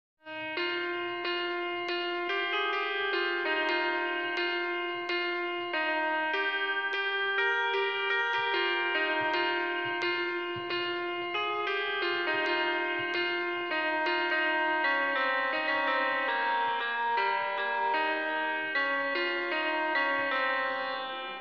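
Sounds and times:
piano music: 0.3 - 21.4.

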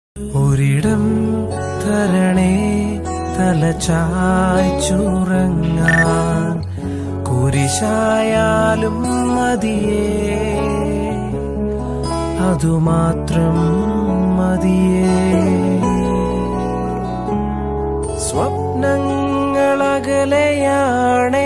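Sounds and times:
Malayalam Christian devotional song: 0.2 - 21.4.

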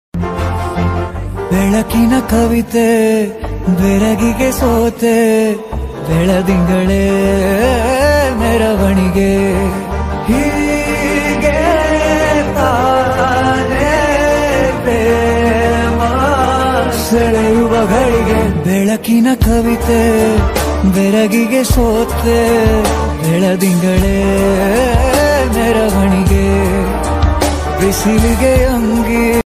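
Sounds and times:
romantic movie background music ringtone: 0.2 - 29.4.

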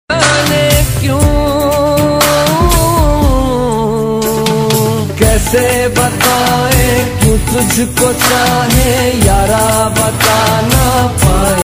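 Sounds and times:
Hindi romantic ringtone music: 0.1 - 11.6.

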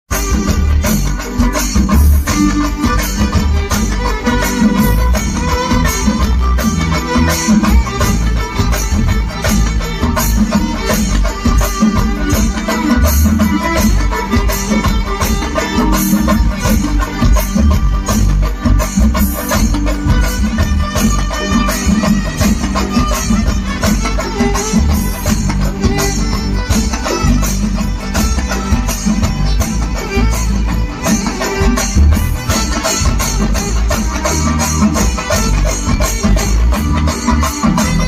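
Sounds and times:
violin fusion with singarimelam percussion: 0.0 - 38.0.

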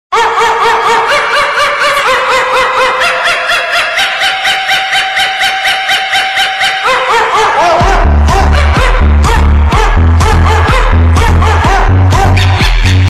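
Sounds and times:
laughter: 0.2 - 12.9
dog song music: 3.8 - 13.0.

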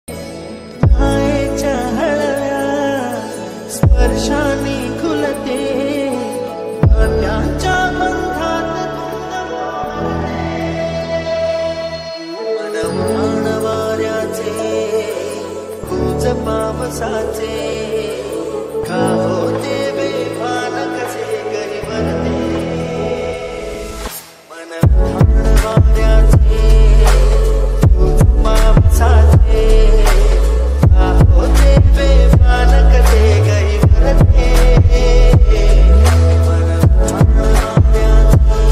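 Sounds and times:
ringtone background music: 0.1 - 38.6.

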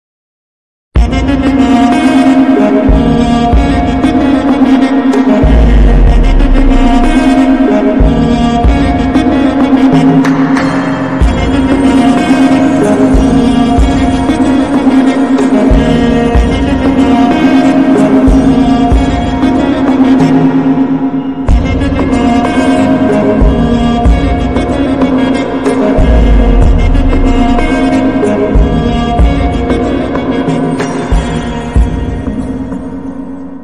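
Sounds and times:
slowed background music with reverb: 1.0 - 33.6.

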